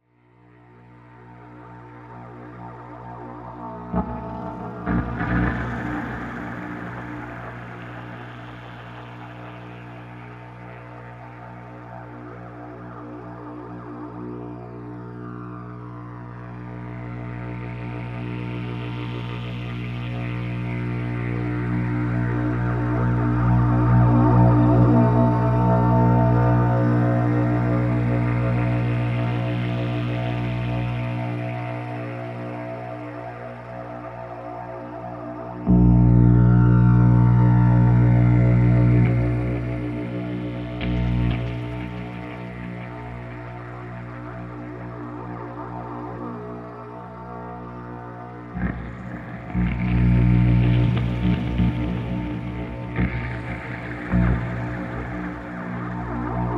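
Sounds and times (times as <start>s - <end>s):
electronica music: 3.6s - 11.6s, 20.2s - 47.1s, 48.3s - 56.5s.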